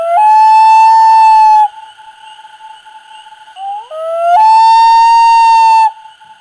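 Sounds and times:
common loon wail call: 0.0 - 1.9, 3.6 - 6.0.

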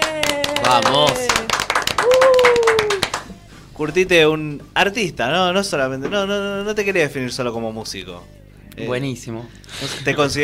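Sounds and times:
applause for studio guest: 0.0 - 3.4
speech: 0.7 - 1.2, 3.8 - 10.4
cheering whoop: 2.0 - 3.2.

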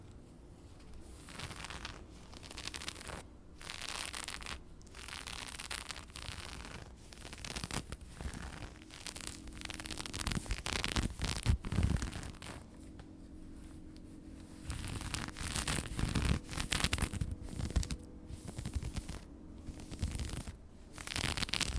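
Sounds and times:
dress fabric scratched and rubbed: 0.0 - 21.7.

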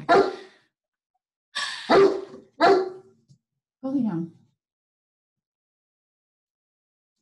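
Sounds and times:
dog barking: 0.0 - 0.5, 1.9 - 3.1
speech: 3.9 - 4.4.

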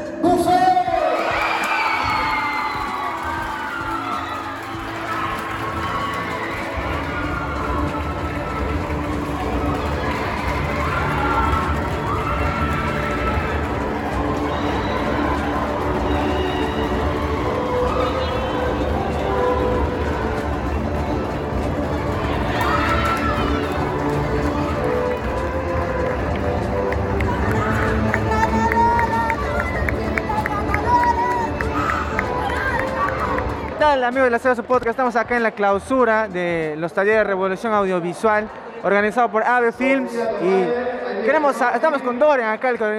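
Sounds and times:
audience applause: 1.0 - 33.8
speech: 34.1 - 42.9.

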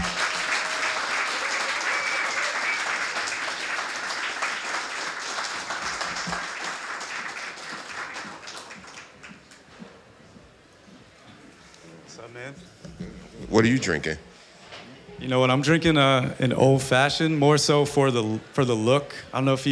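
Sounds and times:
crowd applauding: 0.0 - 9.7
speech: 13.6 - 14.3, 15.2 - 19.7.

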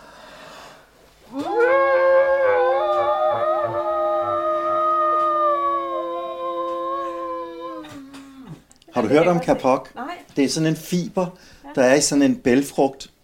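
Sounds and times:
people screaming together: 1.3 - 8.0
speech: 9.1 - 13.1.

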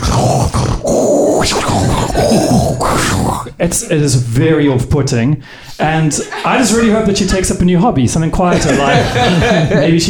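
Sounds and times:
voice imitating a scuba diver breathing through a regulator: 0.0 - 3.6
speech: 3.6 - 10.0
laughter: 6.2 - 7.0, 8.5 - 10.0.

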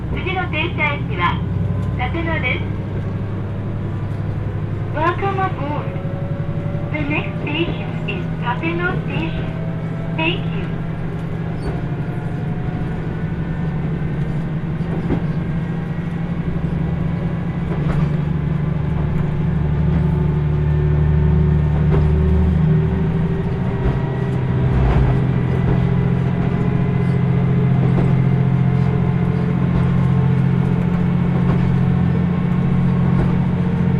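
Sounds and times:
Kyushu Odan limited express running on the Hohi Line: 0.0 - 33.9.

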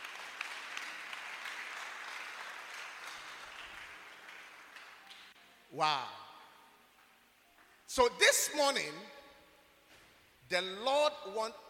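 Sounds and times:
audience clapping hands: 0.0 - 5.4
speech: 5.7 - 6.2, 7.9 - 9.2, 10.5 - 11.6.

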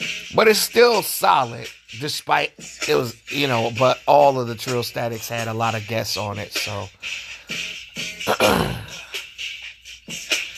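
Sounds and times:
speech: 0.4 - 9.0
throat clearing: 8.2 - 9.1.

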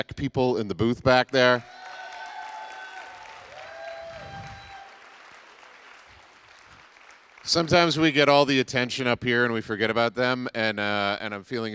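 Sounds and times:
speech: 0.0 - 1.8, 7.5 - 11.7
audience applause: 1.4 - 8.2.

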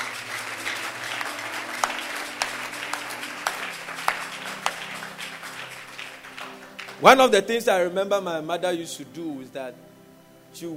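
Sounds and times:
crowd clapping: 0.0 - 7.7
speech: 7.0 - 9.9, 10.5 - 10.7.

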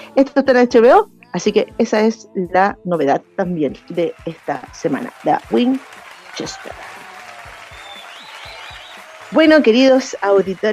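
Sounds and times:
speech: 0.2 - 6.9, 9.3 - 10.7
applause sound effect: 3.9 - 10.7.

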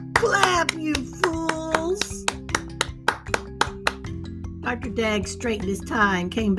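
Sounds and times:
audience hand claps: 0.0 - 4.3
speech: 0.2 - 2.2, 4.7 - 6.5.

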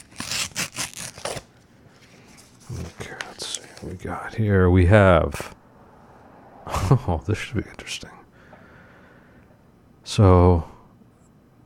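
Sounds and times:
envelope being ripped open: 0.0 - 1.5
speech: 3.8 - 5.5, 6.9 - 8.2, 10.2 - 10.7.

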